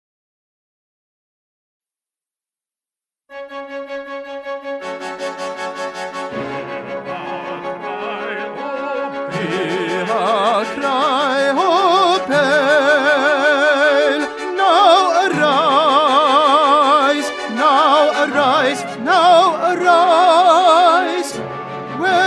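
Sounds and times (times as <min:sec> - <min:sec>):
tenor singing: 0:06.0 - 0:22.2.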